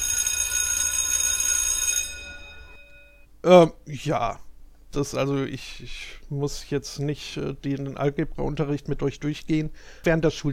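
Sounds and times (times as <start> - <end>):
electric school bell ringing: 0.0 - 3.3
speech: 3.4 - 10.5.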